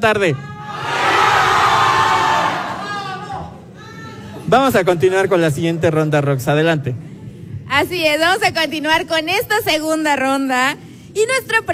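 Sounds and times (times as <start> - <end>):
speech: 0.0 - 0.5, 4.5 - 7.1, 7.8 - 11.7
student supporters cheering and shouting at a university quiz competition: 0.4 - 3.9.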